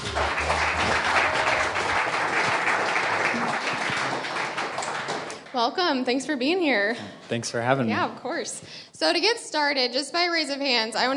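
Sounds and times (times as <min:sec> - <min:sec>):
audience applause welcoming a company's senior vice president to the stage: 0:00.0 - 0:05.6
speech: 0:05.6 - 0:11.1.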